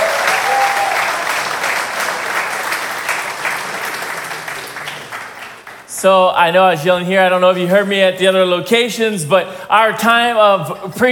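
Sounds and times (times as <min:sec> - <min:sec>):
audience applauding: 0:00.0 - 0:06.0
speech: 0:06.0 - 0:11.1.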